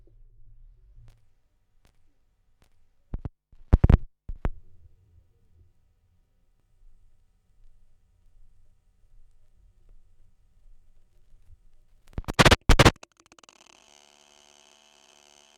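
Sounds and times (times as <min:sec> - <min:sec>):
vinyl record noise: 0:12.2 - 0:13.5.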